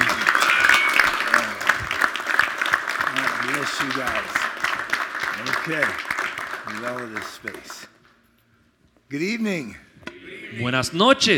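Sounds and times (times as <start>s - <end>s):
loud audience applause: 0.0s - 8.0s
speech: 3.8s - 4.4s, 5.4s - 6.1s, 6.7s - 8.0s, 9.1s - 9.8s, 10.5s - 11.3s.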